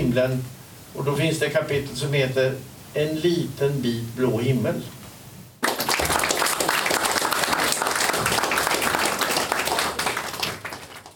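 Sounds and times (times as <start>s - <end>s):
speech: 0.2s - 5.0s
audience applause after lecture: 5.6s - 11.1s.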